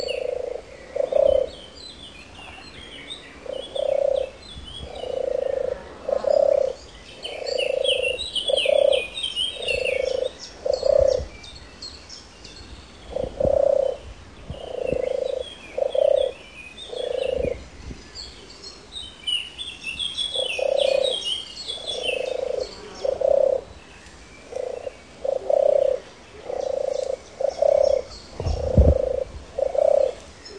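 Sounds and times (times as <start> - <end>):
European turtle dove purring song: 0.0 - 1.6, 3.4 - 11.3, 13.1 - 17.6, 20.3 - 21.2, 21.8 - 23.7, 24.5 - 30.2
small birds chirping: 0.0 - 30.5.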